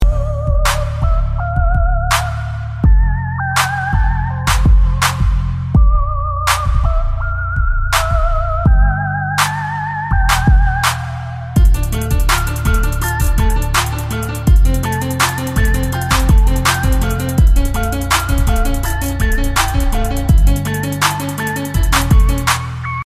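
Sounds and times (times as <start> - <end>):
bass: 0.0 - 23.0.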